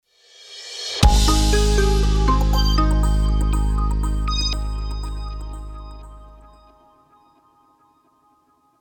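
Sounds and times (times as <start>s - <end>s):
sound logo: 0.6s - 6.9s.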